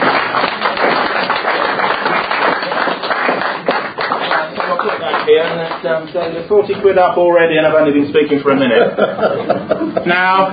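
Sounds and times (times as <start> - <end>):
audience applause: 0.0 - 6.1
speech: 5.3 - 10.5
laughter: 8.5 - 10.5.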